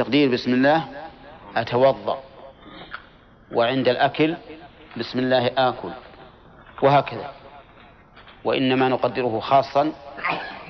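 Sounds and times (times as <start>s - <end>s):
speech: 0.0s - 2.3s, 3.5s - 6.0s, 6.8s - 7.4s, 8.4s - 10.6s
sneeze: 10.2s - 10.6s.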